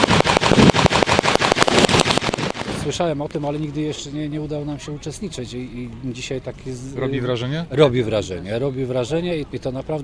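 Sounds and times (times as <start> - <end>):
reenactment gunfire from rifles and machine guns: 0.0 - 2.9
speech: 2.9 - 10.0.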